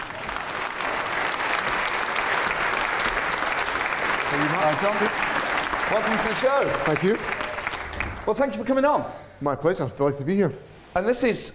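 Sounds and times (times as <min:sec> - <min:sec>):
live audience applause welcoming a Scottish political guest onto a stage show: 0:00.0 - 0:08.8
speech: 0:04.4 - 0:05.3, 0:05.9 - 0:07.4, 0:08.2 - 0:11.5.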